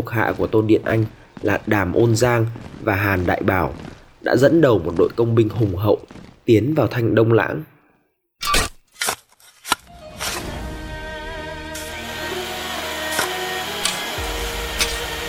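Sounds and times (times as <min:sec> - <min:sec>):
speech: 0:00.0 - 0:07.7
pickaxes and shovels digging: 0:08.4 - 0:10.5, 0:13.1 - 0:15.2
drills: 0:11.8 - 0:15.2.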